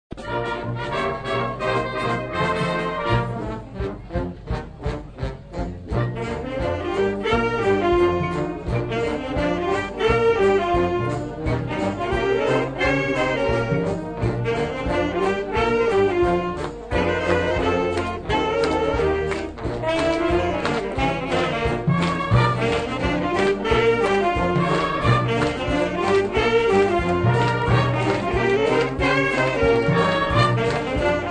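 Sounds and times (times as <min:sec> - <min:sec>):
saxophone music: 0:00.1 - 0:31.2.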